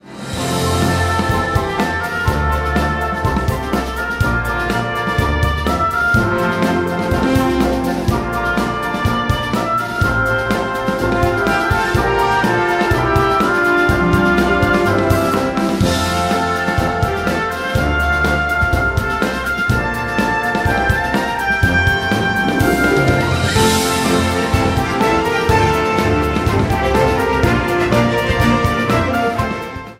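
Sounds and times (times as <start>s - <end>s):
march caprice: 0.0s - 29.9s.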